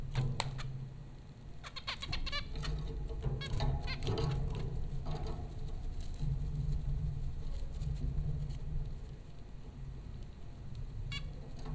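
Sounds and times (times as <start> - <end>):
low droning hum: 0.0 - 11.7
zebra finch nasal honking calls: 1.6 - 2.8.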